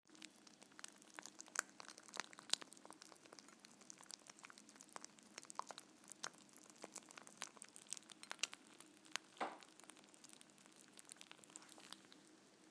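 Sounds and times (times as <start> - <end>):
snapping crackling popping: 0.1 - 12.3.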